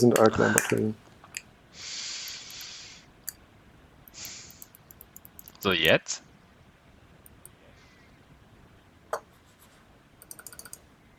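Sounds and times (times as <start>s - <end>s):
speech: 0.0s - 1.0s, 5.6s - 6.3s
computer mouse clicks: 2.2s - 3.4s, 4.0s - 5.7s, 7.2s - 7.6s, 10.2s - 10.9s.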